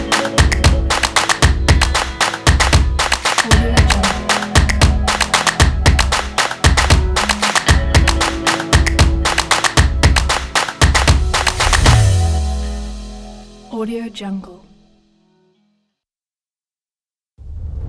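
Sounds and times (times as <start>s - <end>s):
clap: 0.0s - 12.2s
guitar logo sound: 0.0s - 15.7s.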